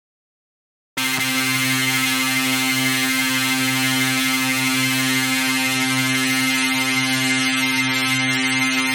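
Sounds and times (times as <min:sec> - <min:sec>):
synth pad: 0:01.0 - 0:08.8.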